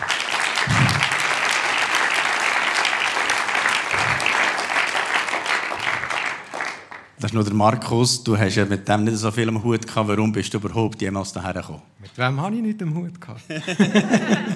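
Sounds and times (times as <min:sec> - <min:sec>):
audience applause: 0:00.0 - 0:07.2
speech: 0:07.2 - 0:14.5
laughter: 0:13.4 - 0:14.5.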